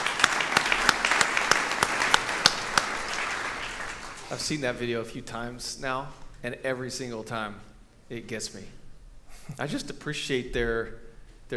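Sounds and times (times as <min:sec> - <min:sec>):
audience clapping: 0:00.0 - 0:04.7
speech: 0:04.3 - 0:08.8, 0:09.5 - 0:11.5.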